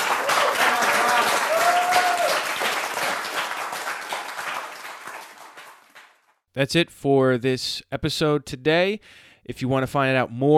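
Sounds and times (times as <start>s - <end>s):
apologetics conference audience applause for an evangelism session speaker: 0.0s - 6.3s
speech: 6.6s - 10.5s.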